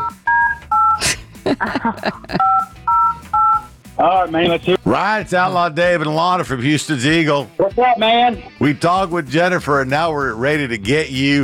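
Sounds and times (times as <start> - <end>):
touch-tone telephone dialing beeps: 0.0 - 1.0, 2.4 - 3.7
laughter: 1.0 - 2.6
speech: 1.6 - 2.5, 4.2 - 11.4.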